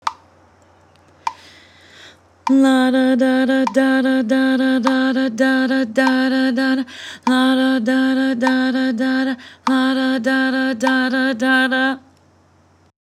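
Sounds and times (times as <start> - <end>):
person singing la da in sixteenth notes: 2.5 - 12.1.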